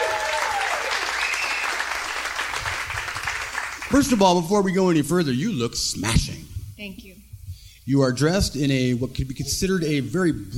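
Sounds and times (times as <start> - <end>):
audience applause: 0.0 - 4.2
speech: 3.9 - 7.2, 7.9 - 10.5.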